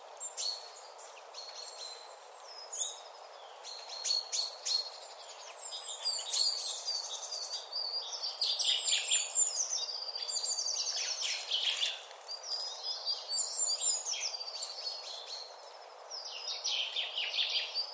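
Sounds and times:
common chaffinch Fringilla coelebs song: 0:00.0 - 0:17.9.

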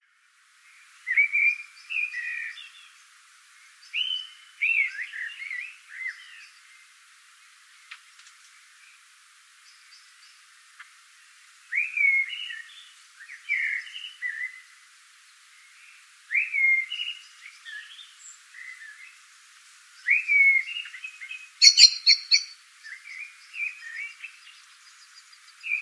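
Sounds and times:
Eurasian blackbird song: 0:00.6 - 0:25.8.

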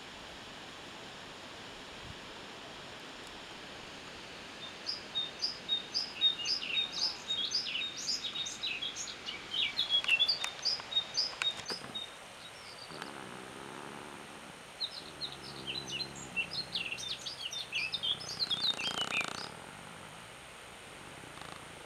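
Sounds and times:
Eurasian blackcap giving short high clipped notes: 0:04.6 - 0:13.2, 0:14.8 - 0:19.5.

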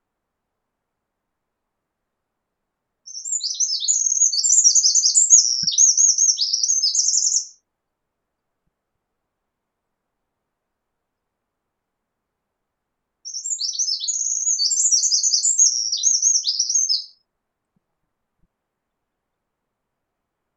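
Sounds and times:
Eurasian wren song: 0:03.1 - 0:07.6, 0:13.3 - 0:17.2.

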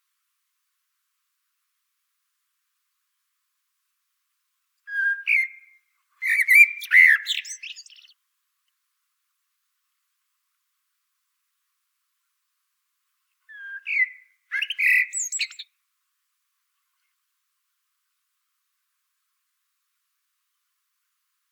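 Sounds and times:
common blackbird singing: 0:04.9 - 0:08.2, 0:13.5 - 0:15.7.

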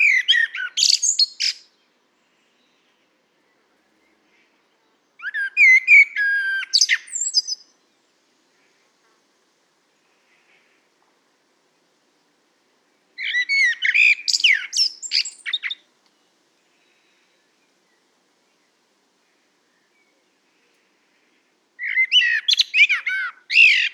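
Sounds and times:
common blackbird singing: 0:00.0 - 0:01.9, 0:02.6 - 0:07.7, 0:13.2 - 0:15.8, 0:21.8 - 0:23.9.

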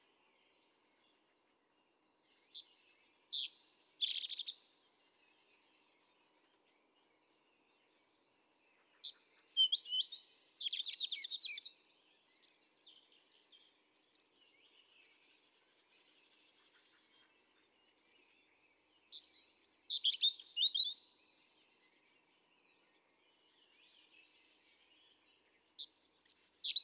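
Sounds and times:
European robin singing: 0:02.3 - 0:04.6, 0:08.7 - 0:12.4, 0:18.3 - 0:21.1, 0:23.6 - 0:26.8.

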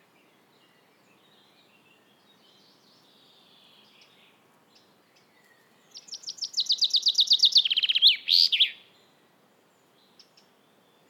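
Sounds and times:
common chaffinch Fringilla coelebs song: 0:00.3 - 0:09.2.

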